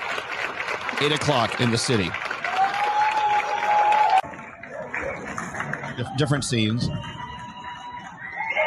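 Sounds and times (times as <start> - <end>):
crowds clapping outdoors for healthcare workers: 0.0 - 8.6
speech: 1.0 - 2.2, 6.0 - 7.2
shrill whistle: 6.8 - 8.6.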